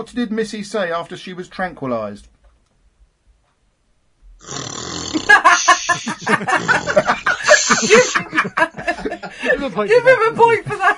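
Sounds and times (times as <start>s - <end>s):
speech: 0.0s - 2.4s, 4.4s - 4.7s, 6.2s - 7.0s, 7.8s - 10.9s
person imitating snoring: 4.4s - 8.2s
giggling and snickering laughter: 5.2s - 9.6s.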